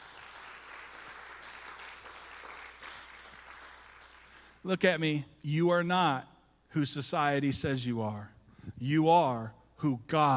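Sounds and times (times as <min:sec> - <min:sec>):
audience applause: 0:00.0 - 0:04.5
speech: 0:04.6 - 0:10.3.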